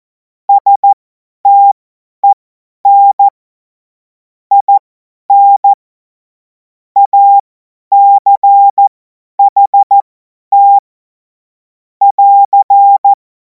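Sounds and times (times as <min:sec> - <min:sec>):
CW Morse code beeps: 0:00.5 - 0:03.3, 0:04.5 - 0:05.8, 0:07.0 - 0:10.8, 0:12.0 - 0:13.2.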